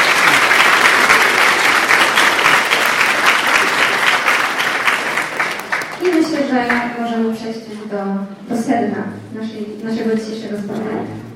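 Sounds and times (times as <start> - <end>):
audience applause welcoming guests at a conference on love and relationships: 0.0 - 6.9
speech: 8.0 - 11.2.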